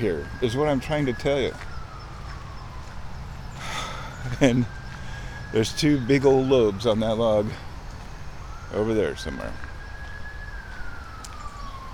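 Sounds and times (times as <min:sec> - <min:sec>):
speech: 0:00.0 - 0:01.7, 0:04.2 - 0:04.8, 0:05.5 - 0:07.7, 0:08.7 - 0:09.6
emergency vehicle siren wailing: 0:00.0 - 0:11.9
low rumble of road noise: 0:00.0 - 0:11.9.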